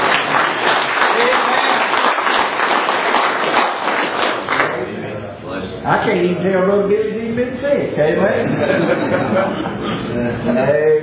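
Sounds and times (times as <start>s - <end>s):
audience applauding: 0.0s - 4.8s
speech: 6.0s - 11.0s
laughter: 8.2s - 10.7s.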